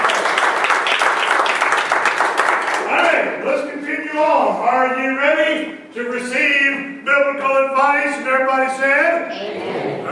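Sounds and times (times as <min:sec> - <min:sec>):
church congregation clapping during an evening service: 0:00.0 - 0:03.4
speech: 0:04.5 - 0:10.1.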